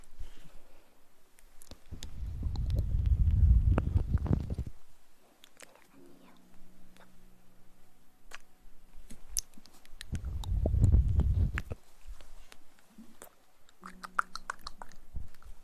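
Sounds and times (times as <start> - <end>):
low steady hum: 0.0 - 15.6
mouth clicks and smacks: 1.4 - 4.8, 5.4 - 6.0, 8.3 - 8.5, 9.1 - 15.6
breathy lip rumble: 1.8 - 4.8, 10.0 - 11.8.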